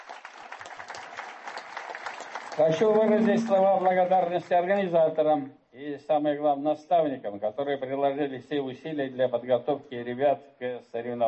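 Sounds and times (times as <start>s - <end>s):
audience applause honouring finalist teams of a youth competition in Tatarstan: 0.0s - 4.5s
speech: 2.6s - 11.2s.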